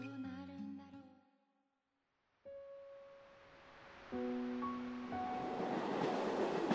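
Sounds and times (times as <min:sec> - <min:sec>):
train rumbling as it slowly pulls out: 0:04.2 - 0:06.7.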